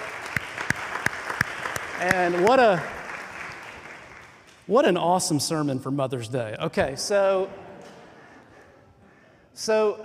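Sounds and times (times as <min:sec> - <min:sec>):
audience clapping: 0:00.0 - 0:05.0
speech: 0:02.0 - 0:03.0, 0:04.7 - 0:07.6, 0:09.6 - 0:10.0.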